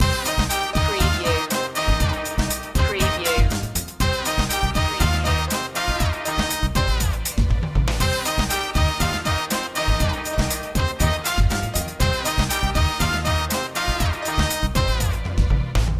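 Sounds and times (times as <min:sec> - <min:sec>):
latin music loop: 0:00.0 - 0:15.4.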